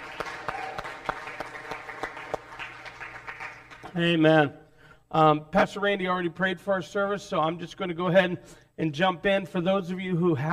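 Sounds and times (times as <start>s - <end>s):
crowd applauding: 0.0s - 4.0s
speech: 3.9s - 10.5s.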